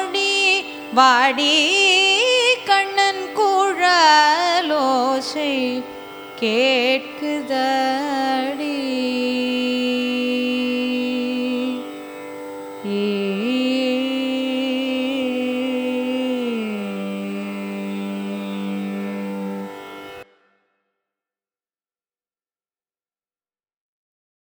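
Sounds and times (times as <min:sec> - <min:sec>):
carnatic raga music: 0:00.0 - 0:20.6.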